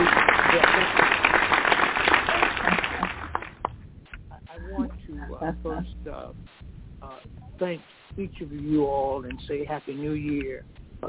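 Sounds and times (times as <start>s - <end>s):
church congregation clapping for their pastor: 0.0s - 4.2s
speech: 5.5s - 6.6s, 7.6s - 11.0s.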